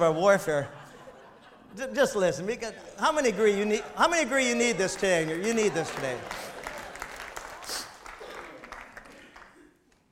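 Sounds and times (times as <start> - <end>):
speech: 0.0 - 0.8, 1.7 - 6.5
laughter: 0.0 - 9.7
audience clapping: 3.1 - 10.1.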